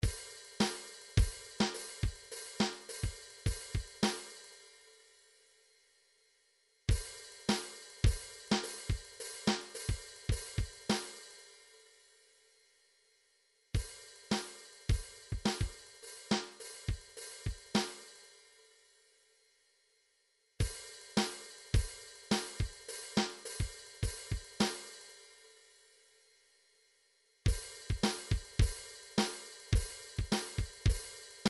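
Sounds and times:
drums: 0:00.0 - 0:05.2, 0:06.9 - 0:12.1, 0:13.8 - 0:18.7, 0:20.6 - 0:25.7, 0:27.5 - 0:31.4.

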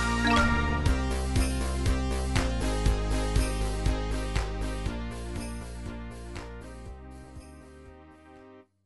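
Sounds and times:
fanfare dance remix: 0:00.0 - 0:05.0.

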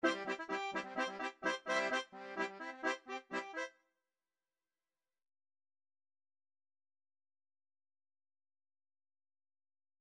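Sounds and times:
polka music with chord lines: 0:00.0 - 0:03.7.

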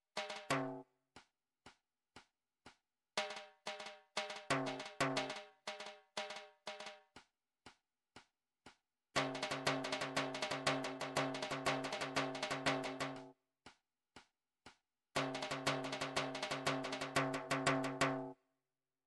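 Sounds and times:
drum track: 0:00.2 - 0:00.8, 0:03.2 - 0:07.0, 0:09.2 - 0:13.3, 0:15.2 - 0:18.3.

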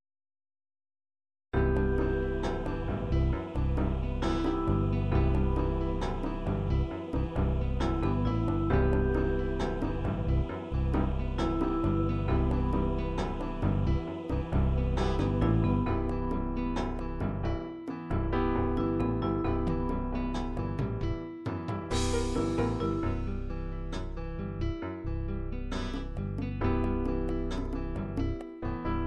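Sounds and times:
acoustic MIDI ballad: 0:01.6 - 0:29.0.

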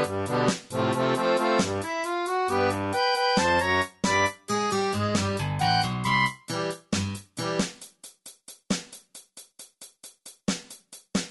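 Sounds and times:
level game music: 0:00.0 - 0:07.6.

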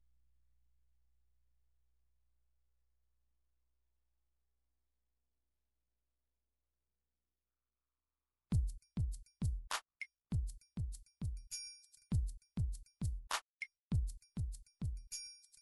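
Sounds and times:
midi drums: 0:08.5 - 0:15.1.

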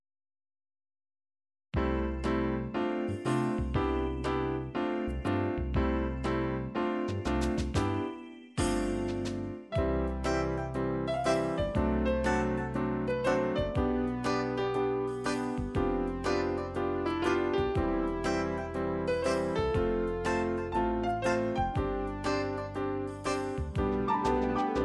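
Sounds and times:
MIDI melody: 0:01.8 - 0:24.8.

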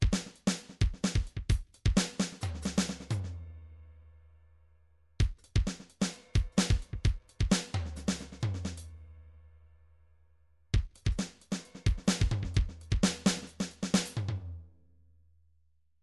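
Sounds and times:
MIDI drum pattern: 0:00.0 - 0:03.4, 0:05.2 - 0:08.9, 0:10.8 - 0:14.5.

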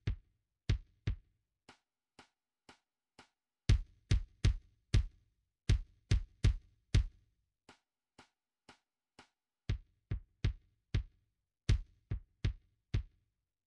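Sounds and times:
kick drum: 0:00.0 - 0:01.3, 0:03.7 - 0:07.2, 0:09.7 - 0:13.2.

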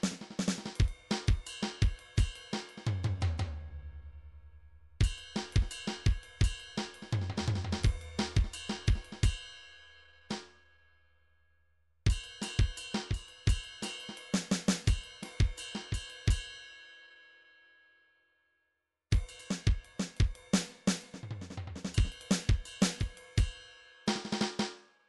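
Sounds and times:
MIDI drum cymbal: 0:00.0 - 0:03.6, 0:05.0 - 0:09.5, 0:12.1 - 0:16.4, 0:19.2 - 0:24.7.

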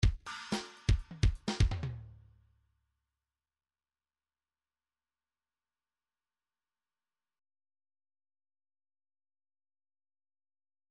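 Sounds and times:
MIDI pop drum groove: 0:00.0 - 0:02.0.

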